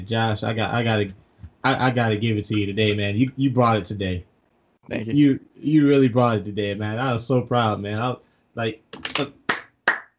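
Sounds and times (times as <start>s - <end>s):
speech: 0.0s - 9.4s
hand clapping: 8.9s - 10.1s.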